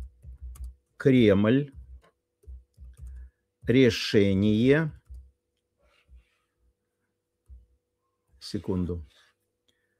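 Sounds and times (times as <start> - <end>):
keyboard keystrokes typing a text: 0.0 - 0.9, 1.7 - 3.8
speech: 1.0 - 1.8, 3.7 - 5.0, 8.4 - 9.2.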